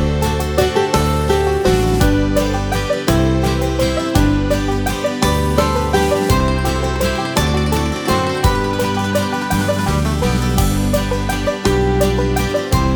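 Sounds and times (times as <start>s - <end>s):
flute playing: 0.0s - 12.8s.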